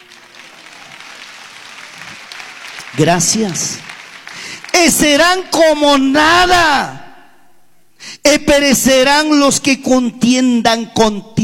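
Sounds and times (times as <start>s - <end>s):
audience clapping hands: 0.0s - 5.5s
speech: 2.9s - 3.9s, 4.8s - 7.0s, 8.3s - 11.4s.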